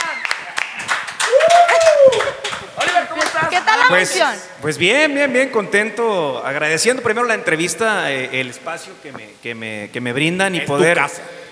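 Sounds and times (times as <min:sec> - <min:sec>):
crew applauding: 0:00.0 - 0:04.0
person whooping: 0:01.2 - 0:02.5
speech: 0:03.6 - 0:11.4.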